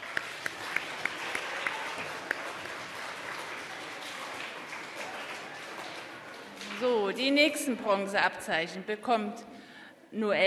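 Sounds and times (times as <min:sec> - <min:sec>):
audience applauding: 0:00.0 - 0:07.2
speech: 0:06.8 - 0:09.5, 0:10.1 - 0:10.4.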